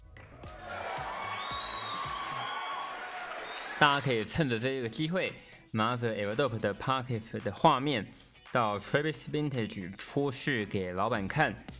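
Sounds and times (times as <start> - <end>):
sharp claps: 0.0 - 4.3
crowd cheering and whooping: 0.0 - 4.6
high whistles: 1.2 - 4.2
speech: 3.8 - 11.7.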